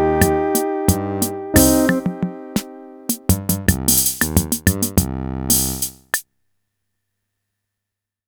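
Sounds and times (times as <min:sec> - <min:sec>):
Casio MT-400V keyboard performance: 0:00.0 - 0:05.1.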